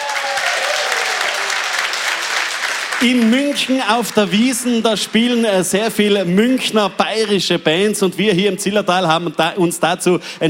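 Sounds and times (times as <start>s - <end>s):
crowd applauding in a packed festival tent: 0.0s - 6.2s
speech: 3.0s - 10.4s.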